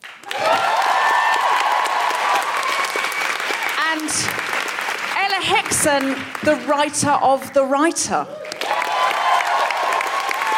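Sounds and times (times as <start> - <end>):
audience applause: 0.0 - 7.0, 8.3 - 10.5
whoops and cheers: 0.2 - 3.9, 8.3 - 10.5
speech: 5.4 - 8.4.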